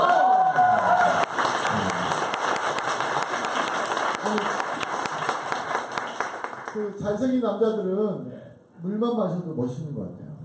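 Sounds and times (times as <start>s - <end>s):
crowd cheering and whoops: 0.0s - 2.0s
crowd applause: 0.0s - 7.0s
speech: 6.9s - 10.2s.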